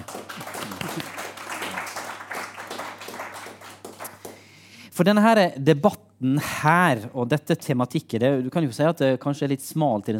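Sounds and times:
audience applause: 0.0 - 4.4
speech: 5.0 - 10.1.

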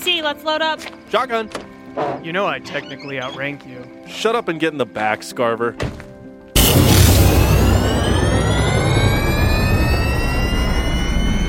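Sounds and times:
speech: 0.1 - 6.0
aircraft engine running before takeoff: 6.6 - 11.4.

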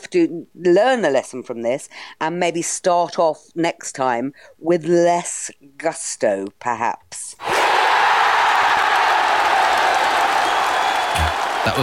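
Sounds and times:
speech: 0.1 - 7.5, 11.6 - 11.8
crowd applause: 7.5 - 11.8.

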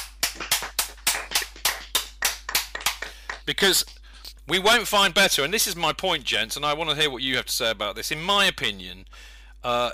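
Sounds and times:
sharp single claps in a round of applause: 0.0 - 4.0
speech: 3.5 - 9.9.

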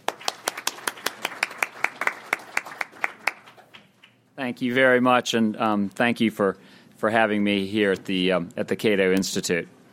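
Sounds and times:
audience applause welcoming a speaker at the Cato Institute: 0.0 - 3.9
speech: 4.4 - 9.8.

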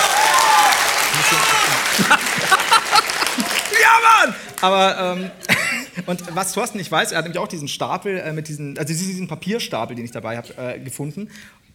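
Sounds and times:
audience clapping: 0.0 - 4.8
laughter: 1.0 - 4.6, 5.2 - 6.6
speech: 4.2 - 5.5, 6.1 - 11.6.

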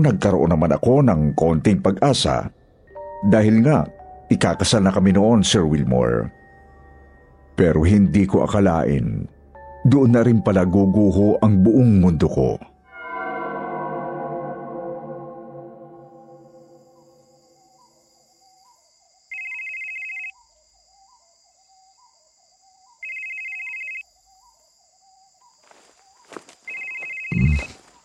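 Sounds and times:
speech: 0.0 - 2.6, 3.2 - 6.4, 7.6 - 12.7
phone ringtone of an incoming call at dawn: 19.3 - 20.4, 23.0 - 24.0, 26.7 - 27.8.

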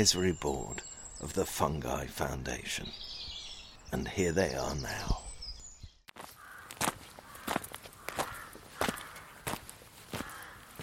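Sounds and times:
speech: 0.0 - 3.1, 3.9 - 5.2
footsteps walking into gardens: 6.1 - 10.8.

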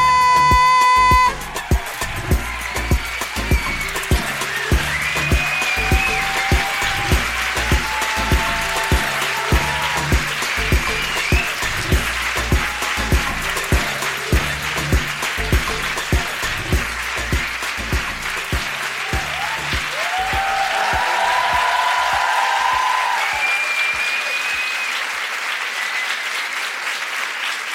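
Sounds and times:
audience applause: 0.2 - 27.7.

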